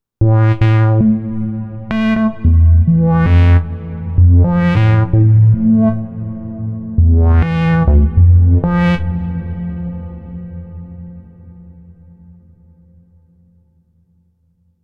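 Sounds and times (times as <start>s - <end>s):
dark wobble bass: 0.2s - 11.5s.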